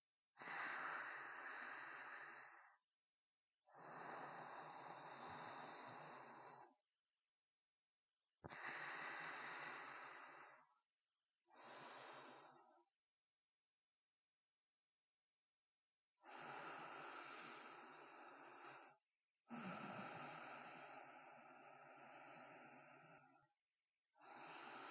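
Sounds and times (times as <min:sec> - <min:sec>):
sparse sleeping breaths: 0:00.4 - 0:02.8, 0:03.6 - 0:06.8, 0:08.4 - 0:10.7, 0:11.4 - 0:12.9, 0:16.2 - 0:23.5, 0:24.2 - 0:24.9.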